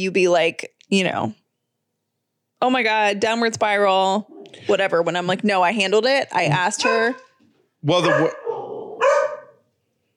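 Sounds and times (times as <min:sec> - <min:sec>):
speech: 0:00.0 - 0:01.4, 0:02.6 - 0:08.4
dog barking from across the street: 0:06.8 - 0:09.7.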